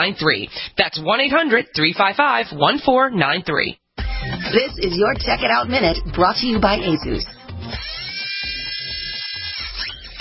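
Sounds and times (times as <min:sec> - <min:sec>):
speech: 0:00.0 - 0:07.9
mechanical whirring from a bionic vest on an auto assembly line: 0:07.8 - 0:10.1.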